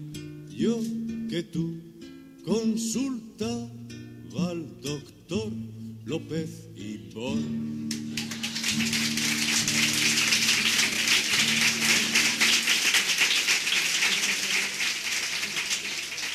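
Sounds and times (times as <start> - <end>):
speech: 0.6 - 3.8, 4.4 - 7.8, 8.8 - 9.1
audience applause after a song: 8.0 - 16.3.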